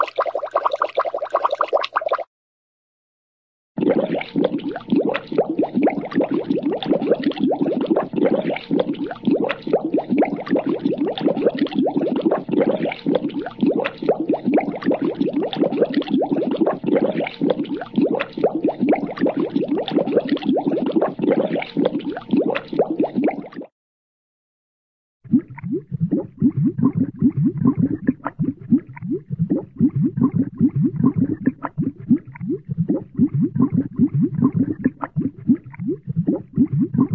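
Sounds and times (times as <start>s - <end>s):
small cartoon water bubbles: 0.0s - 2.3s, 3.8s - 23.7s, 25.2s - 37.1s.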